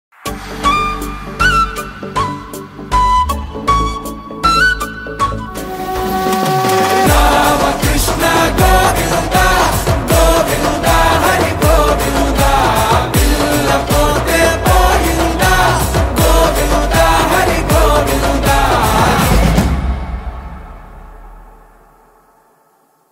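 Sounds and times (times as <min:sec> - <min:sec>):
ringtone song: 0:00.4 - 0:19.6.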